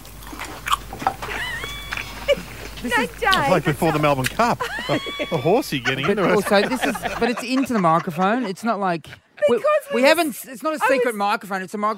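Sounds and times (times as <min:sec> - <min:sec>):
person chewing crispy fried chicken: 0:00.0 - 0:02.8
laughter: 0:01.3 - 0:10.1
speech: 0:02.8 - 0:11.9.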